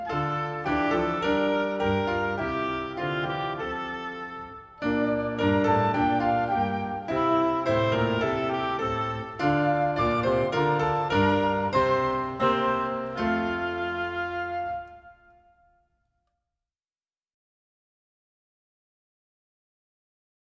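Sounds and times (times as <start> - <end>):
instrumental hymn: 0.0 - 15.7.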